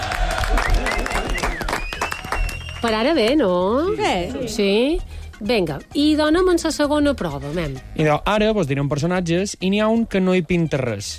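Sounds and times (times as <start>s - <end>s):
audience applause in a quiz game show: 0.0s - 3.1s
speech: 2.8s - 11.1s.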